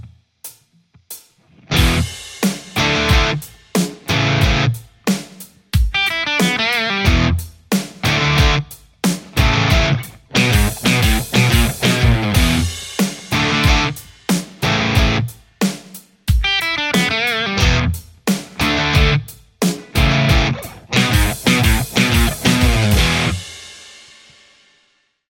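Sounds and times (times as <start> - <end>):
Stratocaster electric guitar: 1.5 - 4.8, 5.9 - 7.4, 8.0 - 8.7, 9.3 - 15.3, 16.4 - 23.5.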